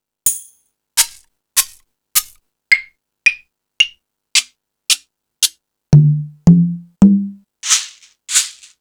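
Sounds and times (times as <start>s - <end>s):
EMU Pro-Cussion percussion: 6.0s - 7.4s.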